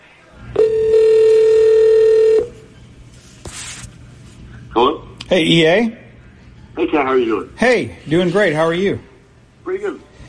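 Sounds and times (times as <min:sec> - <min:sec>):
telephone call ringing: 0:00.6 - 0:02.6
speech: 0:04.8 - 0:06.0, 0:06.8 - 0:09.1.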